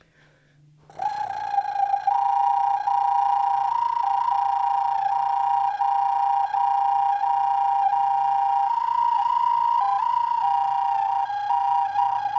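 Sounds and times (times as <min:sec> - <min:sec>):
clay flute playing: 0:00.9 - 0:12.3.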